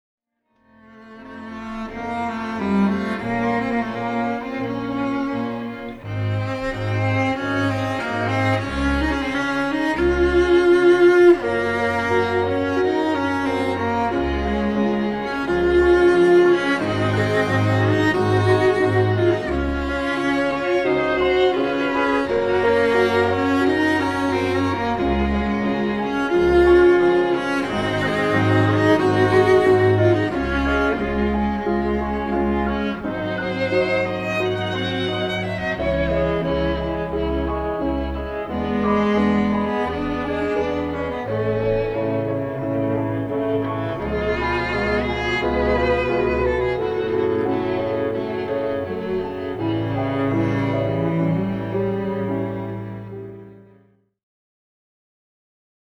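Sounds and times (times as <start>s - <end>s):
quintet in A: 1.3s - 53.6s.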